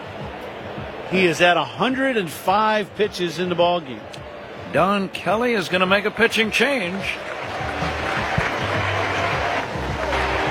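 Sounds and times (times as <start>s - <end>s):
low murmur of ballpark crowd voices: 0.0s - 10.4s
speech: 1.1s - 7.3s
ballpark crowd mild applause: 5.7s - 10.4s.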